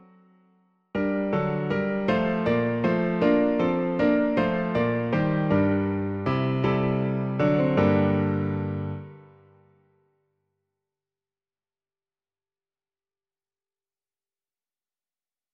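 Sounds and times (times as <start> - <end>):
piano version of a piece: 0.0 - 9.8.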